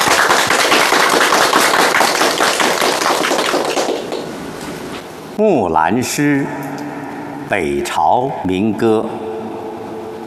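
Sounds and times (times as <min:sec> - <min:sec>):
audience applause: 0:00.0 - 0:04.3
speech: 0:05.4 - 0:06.8, 0:07.5 - 0:09.3.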